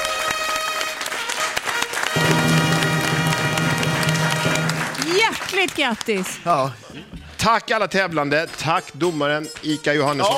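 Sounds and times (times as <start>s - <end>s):
studio audience applause: 0.0s - 6.7s
sustained tone: 2.2s - 5.0s
speech: 5.3s - 10.3s.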